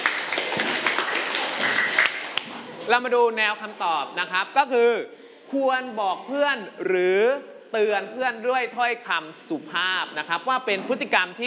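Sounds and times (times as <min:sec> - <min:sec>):
classmates clapping in a school classroom: 0:00.0 - 0:02.8
speech: 0:02.9 - 0:11.4.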